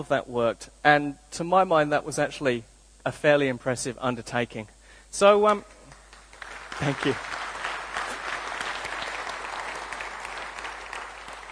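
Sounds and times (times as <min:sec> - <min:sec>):
speech: 0:00.0 - 0:05.8, 0:06.8 - 0:07.3
clapping: 0:05.5 - 0:11.5.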